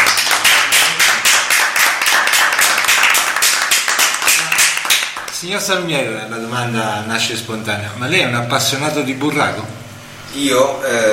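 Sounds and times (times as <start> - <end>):
audience applause: 0.0 - 5.4
speech: 5.5 - 11.1.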